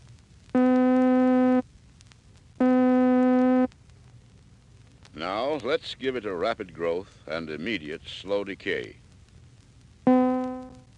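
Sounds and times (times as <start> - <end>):
middle C tones with rapid attack and rapid cutoff: 0.6 - 1.6, 2.6 - 3.7, 10.1 - 10.9
speech: 5.2 - 9.0.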